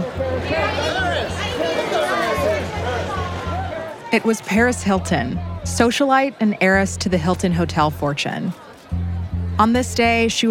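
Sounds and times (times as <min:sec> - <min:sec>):
photographers shouting on a red carpet: 0:00.0 - 0:06.9
speech: 0:04.1 - 0:08.6, 0:09.6 - 0:10.4.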